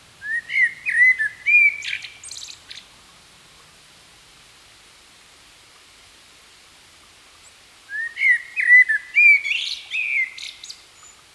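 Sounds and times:
common blackbird singing: 0:00.2 - 0:02.6, 0:07.9 - 0:11.1.

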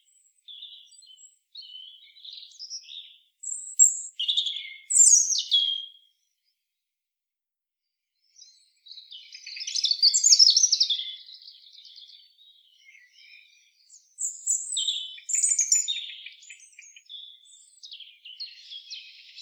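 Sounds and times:
European robin song of high scratchy tinkling phrases: 0:00.0 - 0:06.5, 0:08.2 - 0:19.3.

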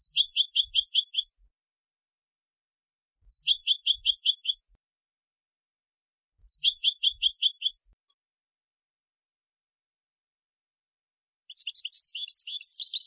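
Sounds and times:
European goldfinch twittering: 0:00.0 - 0:01.4, 0:03.3 - 0:04.7, 0:06.5 - 0:08.0, 0:11.5 - 0:13.0.

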